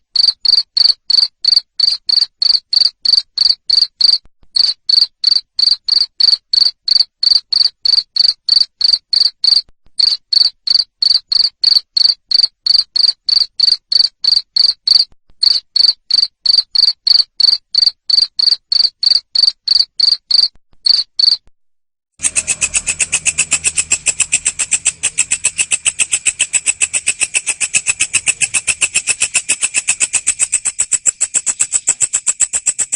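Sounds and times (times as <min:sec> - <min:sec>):
cricket chirping: 0:00.2 - 0:21.4, 0:22.2 - 0:32.9.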